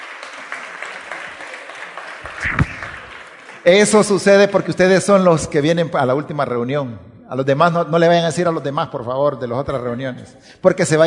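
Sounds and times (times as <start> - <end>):
audience applause: 0.0 - 3.8
speech: 3.6 - 11.0.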